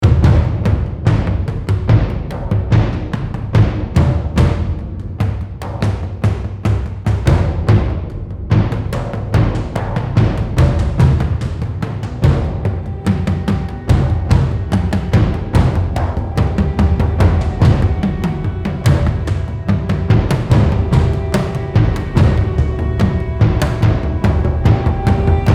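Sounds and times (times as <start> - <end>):
percussion build-up: 0.0 - 25.5.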